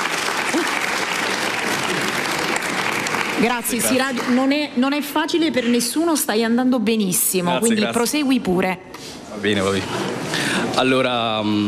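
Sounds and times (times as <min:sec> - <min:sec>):
audience applause: 0:00.0 - 0:04.6
speech: 0:03.4 - 0:11.6.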